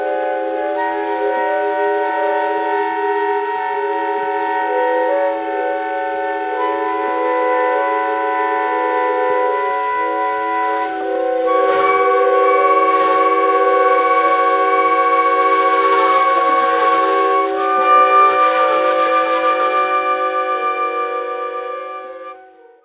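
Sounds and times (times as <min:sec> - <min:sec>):
tree flute: 0:00.0 - 0:22.8.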